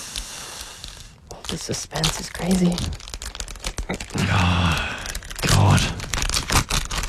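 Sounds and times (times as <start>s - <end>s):
paper envelope torn open during a prize reveal: 1.4s - 7.0s
speech: 1.5s - 3.1s, 3.9s - 4.9s, 5.5s - 6.0s.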